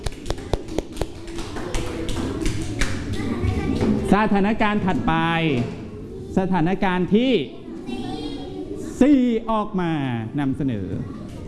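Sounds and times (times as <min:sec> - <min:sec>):
children clapping for a group: 0:00.0 - 0:03.4
speech: 0:04.1 - 0:05.8, 0:06.4 - 0:08.0, 0:09.0 - 0:11.2.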